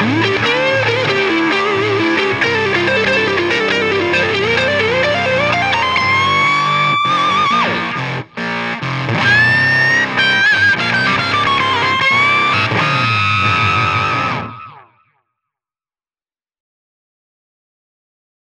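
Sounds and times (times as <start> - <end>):
distorted sound: 0.0 - 14.8.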